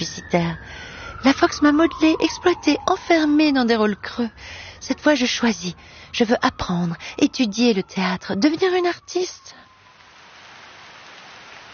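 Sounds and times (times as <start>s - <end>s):
speech: 0.3s - 9.6s
rain falling on a garden: 9.9s - 11.7s.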